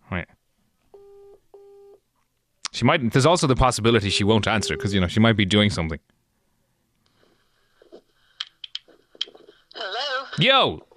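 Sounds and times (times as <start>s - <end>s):
speech: 2.8s - 6.2s, 10.4s - 10.9s
WhatsApp call ringing tones: 4.0s - 5.0s.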